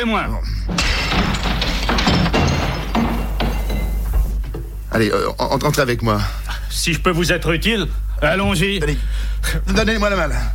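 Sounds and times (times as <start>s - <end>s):
speech: 0.0s - 2.0s, 4.9s - 10.5s
window pane being smashed to get in through the window: 0.8s - 4.1s.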